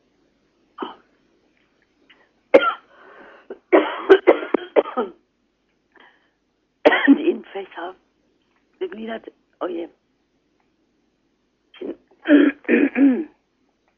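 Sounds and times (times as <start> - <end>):
person coughing after choking on something swallowed the wrong way: 0.8 - 1.0, 2.6 - 2.9, 3.5 - 5.2, 6.9 - 7.2, 11.8 - 13.4
speech: 9.0 - 10.0.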